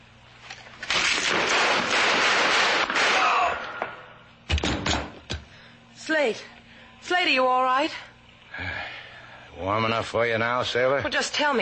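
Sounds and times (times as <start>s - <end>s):
gunshots: 0.9s - 3.8s
speech: 6.2s - 8.1s, 9.6s - 11.6s.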